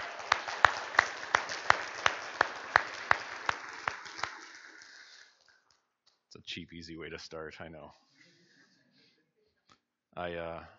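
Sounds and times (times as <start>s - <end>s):
sharp crisp applause claps: 0.0s - 4.8s
speech: 6.5s - 8.1s, 10.2s - 10.7s.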